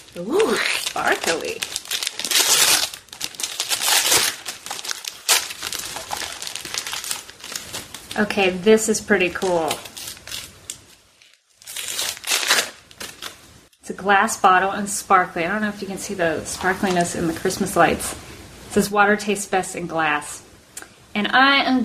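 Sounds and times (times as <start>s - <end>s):
packaging crinkling as it is unwrapped: 0.0s - 8.3s, 9.4s - 13.4s
speech: 0.2s - 1.8s, 8.2s - 9.9s, 14.0s - 18.2s, 18.8s - 20.4s, 21.2s - 21.8s.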